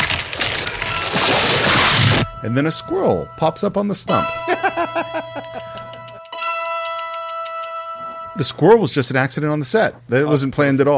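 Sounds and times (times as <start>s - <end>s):
tree falling: 0.0s - 2.4s
speech: 2.4s - 5.3s, 8.4s - 10.9s
laughter: 4.4s - 6.1s.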